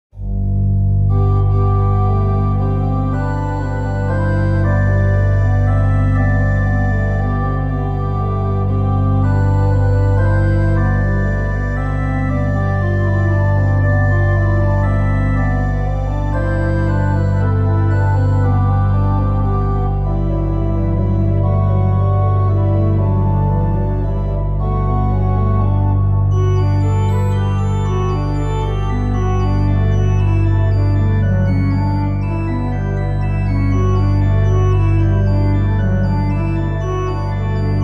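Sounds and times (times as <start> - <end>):
chorale prelude: 0.2 - 37.8.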